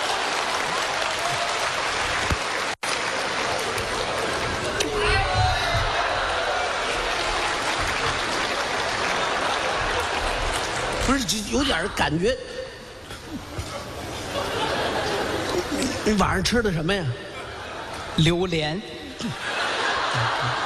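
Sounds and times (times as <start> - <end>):
audience clapping: 0.0 - 5.0, 5.9 - 11.2
laughter: 5.8 - 11.5, 13.1 - 16.2, 17.2 - 18.2, 19.0 - 20.6
speech: 11.3 - 12.6, 16.1 - 17.3, 18.2 - 19.5, 20.2 - 20.6.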